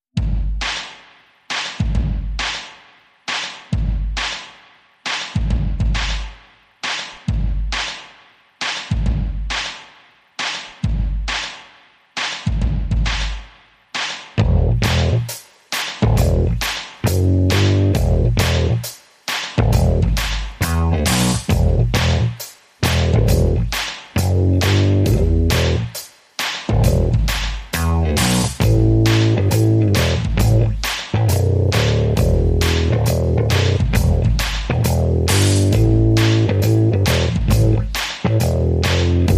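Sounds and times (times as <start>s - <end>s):
drums: 0.0s - 39.3s
bass: 14.4s - 15.4s, 16.0s - 19.0s, 19.6s - 39.3s.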